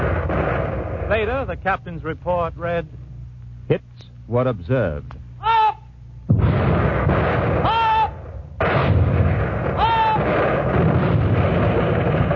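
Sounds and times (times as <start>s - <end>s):
heavy warship guns firing shells at an enemy ship at sea: 0.0s - 1.7s, 6.3s - 12.3s
speech: 1.1s - 3.0s, 3.7s - 5.2s.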